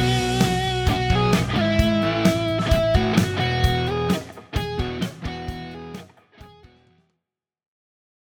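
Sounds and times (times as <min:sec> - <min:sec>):
unplugged electric guitar: 0:00.0 - 0:06.8.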